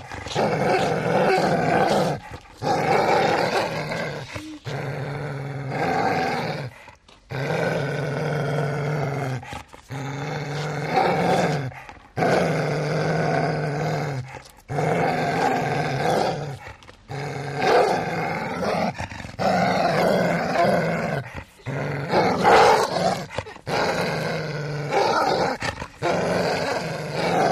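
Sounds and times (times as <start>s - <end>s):
large dog growling angrily: 0.0s - 27.5s.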